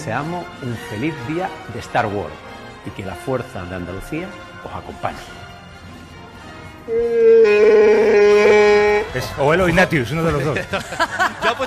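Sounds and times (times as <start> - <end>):
speech: 0.0 - 5.5, 6.9 - 8.3, 9.2 - 11.6
long moaning roar: 6.9 - 9.2
laughter: 10.2 - 11.6.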